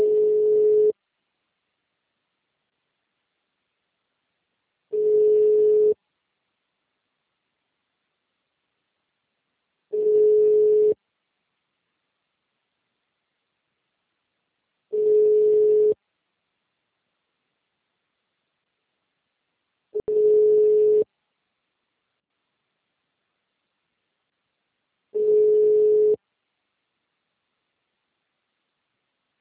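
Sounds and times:
telephone busy signal: 0.0s - 0.9s, 5.0s - 6.0s, 10.0s - 11.0s, 15.0s - 16.0s, 20.0s - 21.0s, 25.2s - 26.2s.

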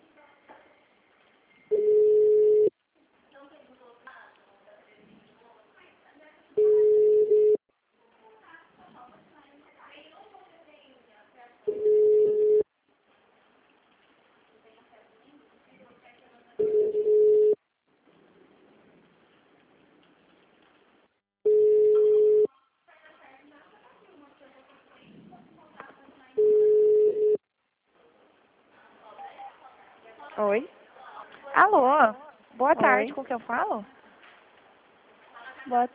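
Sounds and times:
telephone busy-line tone: 1.7s - 2.7s, 6.6s - 7.6s, 11.7s - 12.6s, 16.6s - 17.6s, 21.5s - 22.5s, 26.4s - 27.4s
speech: 30.4s - 30.8s, 31.6s - 34.0s, 35.7s - 35.9s.

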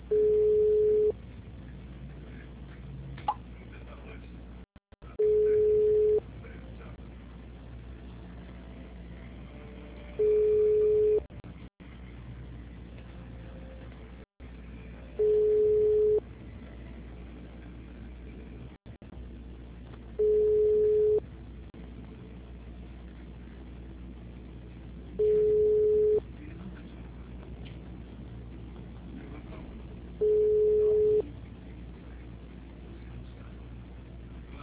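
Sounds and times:
telephone line beeps while a call is transferred to an attendant: 0.1s - 1.1s, 5.2s - 6.2s, 10.2s - 11.3s, 15.2s - 16.2s, 20.2s - 21.2s, 25.2s - 26.2s, 30.2s - 31.3s
telephone line hiss: 0.1s - 1.1s, 10.2s - 11.3s, 15.2s - 16.2s, 20.2s - 21.2s, 25.2s - 26.2s, 30.2s - 31.3s.

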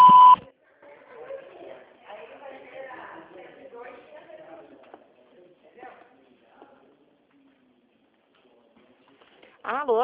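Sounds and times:
electronic voicemail beep: 0.0s - 0.4s.

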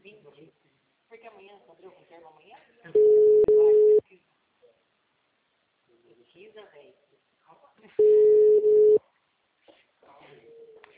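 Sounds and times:
speech: 1.6s - 3.3s
telephone busy tone: 3.0s - 4.0s, 8.0s - 9.0s.

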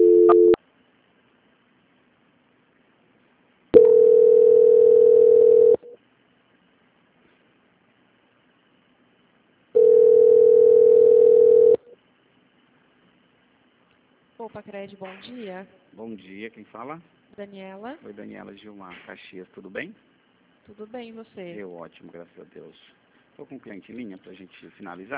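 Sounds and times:
telephone tone beeps during a call transfer: 0.0s - 0.6s, 3.8s - 5.8s, 9.8s - 11.8s
speech: 14.5s - 20.1s, 20.7s - 25.1s.

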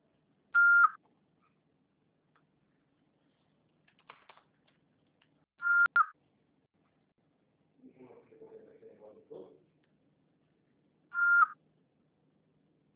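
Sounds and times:
voicemail recording beeps: 0.6s - 1.0s, 5.6s - 6.1s, 11.1s - 11.6s.

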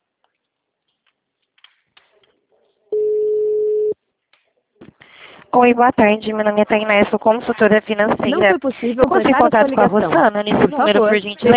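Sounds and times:
voicemail tone after the greeting: 3.0s - 4.0s
speech: 5.5s - 11.5s.

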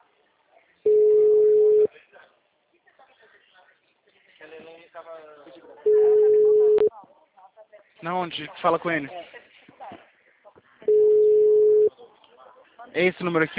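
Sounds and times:
telephone ringing tone: 0.9s - 1.9s, 5.9s - 6.9s, 10.9s - 11.9s
speech: 8.0s - 9.3s, 13.0s - 13.5s.

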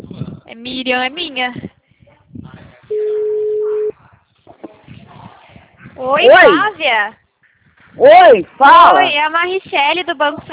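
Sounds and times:
speech: 0.6s - 1.7s, 6.0s - 7.2s, 8.0s - 10.5s
telephone busy tone after a dropped call: 2.9s - 3.9s.

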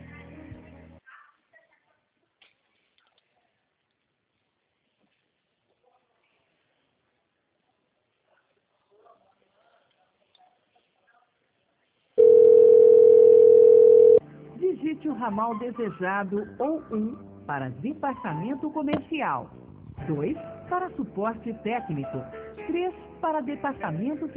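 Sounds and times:
telephone line tone on hold: 12.2s - 14.2s
speech: 15.1s - 24.3s.

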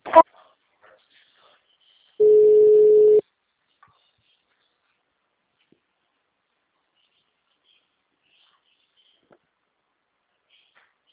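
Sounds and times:
telephone ringing tone while a call is transferred: 2.2s - 3.2s.

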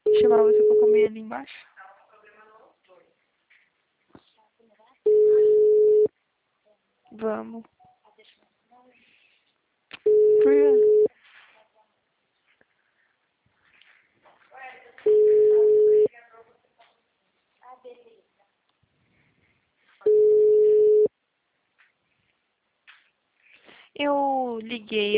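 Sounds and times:
recorded voice speaking: 0.0s - 2.3s, 7.1s - 8.4s, 10.2s - 11.0s, 24.0s - 25.1s
telephone busy signal: 0.1s - 1.1s, 5.1s - 6.1s, 10.1s - 11.1s, 15.1s - 16.1s, 20.1s - 21.1s
speech: 0.2s - 1.7s, 7.1s - 7.7s, 24.0s - 25.1s.

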